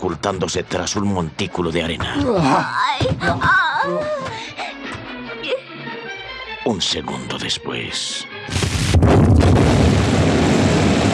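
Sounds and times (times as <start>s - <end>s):
speech: 0.0s - 4.6s, 6.6s - 9.6s
gasoline tanks exploding in a wrecked airplane: 8.5s - 11.1s.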